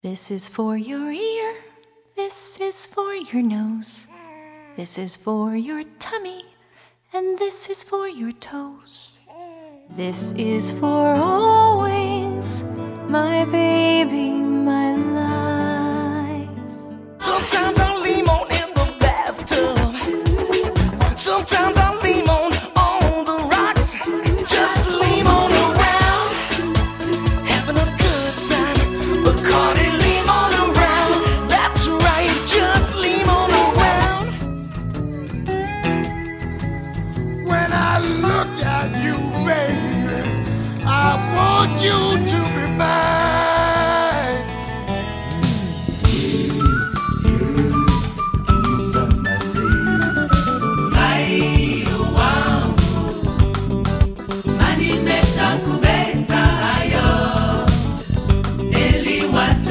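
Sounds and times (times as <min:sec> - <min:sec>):
vocals: 0:00.0 - 0:36.2, 0:37.4 - 0:59.6.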